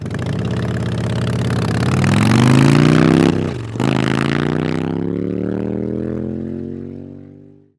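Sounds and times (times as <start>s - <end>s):
engine accelerating: 0.0s - 7.7s.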